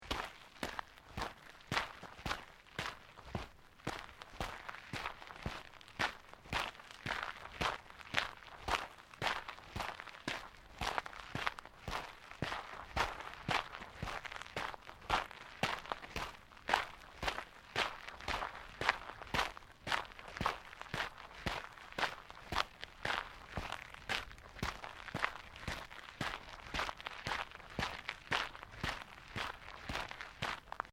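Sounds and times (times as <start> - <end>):
footsteps in sneakers on fine gravel: 0.0 - 30.9.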